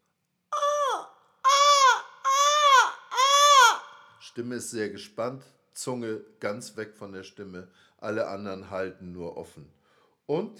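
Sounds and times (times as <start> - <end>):
voice imitating seagull cries: 0.6 - 4.0
speech: 4.4 - 10.5.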